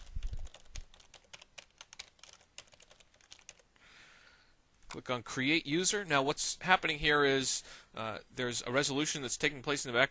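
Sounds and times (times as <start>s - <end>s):
computer keyboard typing into a registration form: 0.0s - 3.7s
speech: 5.0s - 10.1s.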